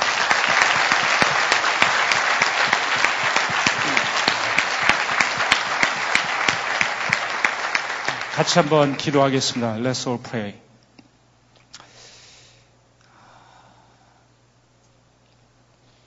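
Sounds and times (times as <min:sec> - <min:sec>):
audience applause: 0:00.0 - 0:09.8
speech: 0:08.4 - 0:10.6.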